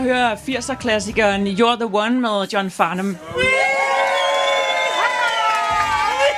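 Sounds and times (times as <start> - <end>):
speech: 0.0 - 3.7
party crowd cheering at a party in Gilleleje: 3.2 - 6.3.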